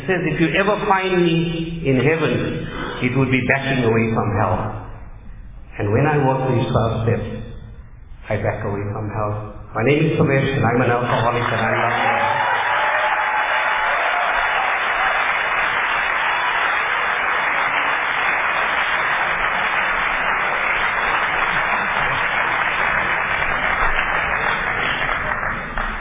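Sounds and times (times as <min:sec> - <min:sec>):
speech: 0:00.1 - 0:04.8, 0:05.8 - 0:07.4, 0:08.3 - 0:12.2
audience applause: 0:11.0 - 0:25.9.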